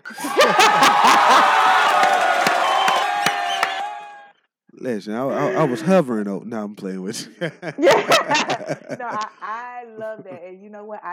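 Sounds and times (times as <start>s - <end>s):
crowd cheering, whooping and laughing: 0.0s - 4.0s, 7.2s - 10.4s
sharp claps: 1.9s - 4.0s
speech: 4.9s - 11.1s.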